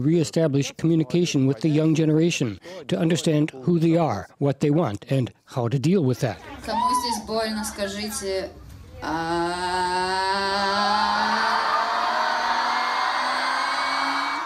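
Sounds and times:
speech: 0.0 - 11.6
concert crowd shouting along: 10.8 - 14.4.

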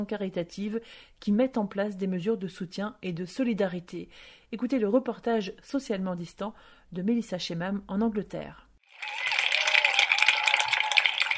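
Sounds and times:
speech: 0.0 - 9.3
applause for healthcare workers: 8.9 - 11.3.

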